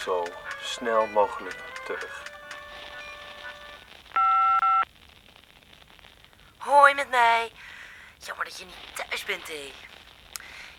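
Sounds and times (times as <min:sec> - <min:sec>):
speech: 0:00.0 - 0:02.3, 0:06.7 - 0:09.9
answering machine beep: 0:03.0 - 0:04.8.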